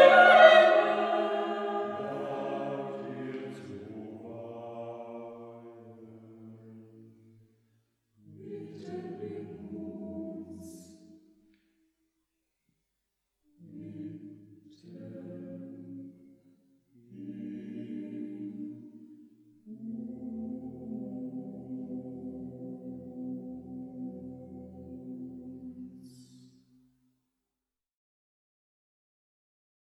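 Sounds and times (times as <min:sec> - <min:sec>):
choir singing a closing piece: 0:00.0 - 0:07.4, 0:08.2 - 0:11.2, 0:13.6 - 0:16.4, 0:17.0 - 0:26.6.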